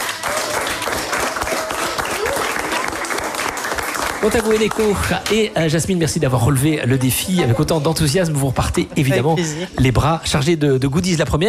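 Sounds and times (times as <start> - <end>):
studio audience applause: 0.0 - 6.0
speech: 4.2 - 11.4.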